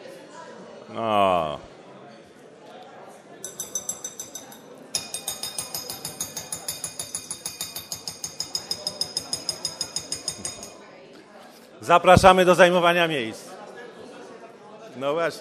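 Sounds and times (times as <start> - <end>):
murmur of voices: 0.0 - 15.3
speech: 0.9 - 1.7, 11.9 - 13.4, 15.0 - 15.3
small hand bell ringing: 3.5 - 10.8.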